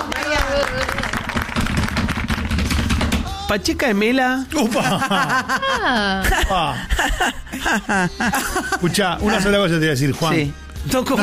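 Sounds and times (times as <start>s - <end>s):
crowd clapping: 0.0s - 3.2s
speech: 3.5s - 11.2s
laughter: 4.6s - 9.3s.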